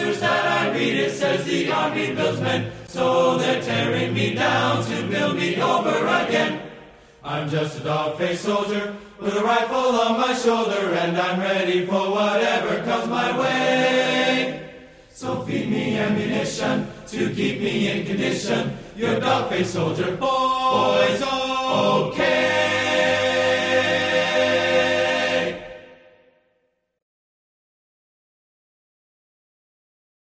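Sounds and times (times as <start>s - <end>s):
chorus vocals: 0.0s - 26.4s.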